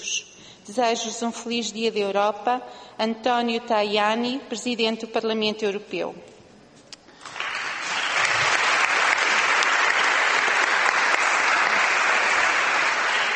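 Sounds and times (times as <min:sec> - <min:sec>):
speech: 0:00.7 - 0:06.4
audience applause: 0:07.2 - 0:13.3.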